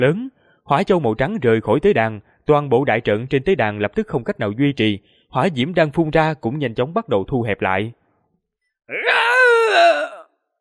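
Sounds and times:
speech: 0:00.0 - 0:08.0, 0:08.9 - 0:09.9
loud angry shout from above: 0:08.9 - 0:10.3.

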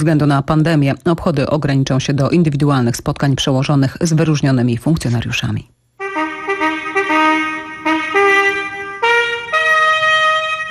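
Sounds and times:
speech: 0:00.0 - 0:05.8
trumpet call at ceremony in Pałac Prezydencki: 0:06.0 - 0:10.6.

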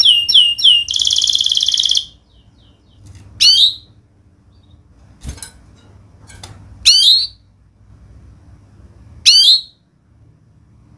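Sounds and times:
canary singing a fast varied song: 0:00.0 - 0:04.9, 0:06.8 - 0:07.6, 0:09.2 - 0:09.9.

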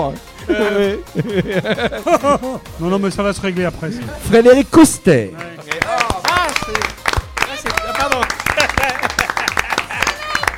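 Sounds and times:
speech: 0:00.0 - 0:05.7
laughter: 0:00.4 - 0:02.7, 0:08.1 - 0:10.5
audience applause: 0:05.6 - 0:10.5.

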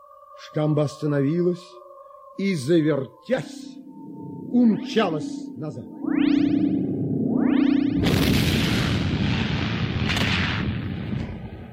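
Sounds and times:
speech: 0:00.4 - 0:01.8, 0:02.4 - 0:03.8, 0:04.5 - 0:06.6
rising whining hum: 0:02.7 - 0:09.2
violent booming impact from a backlash strike: 0:08.0 - 0:11.7.

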